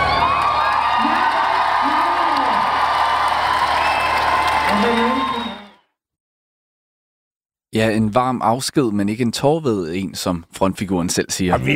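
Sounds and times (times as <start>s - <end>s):
concert crowd applauding: 0.0s - 5.8s
speech: 7.8s - 11.7s.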